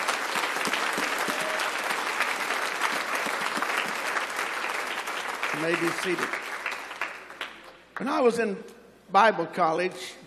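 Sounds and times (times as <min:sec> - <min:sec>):
large group hand clapping applause: 0:00.0 - 0:07.7
speech: 0:05.6 - 0:06.4, 0:08.0 - 0:10.2.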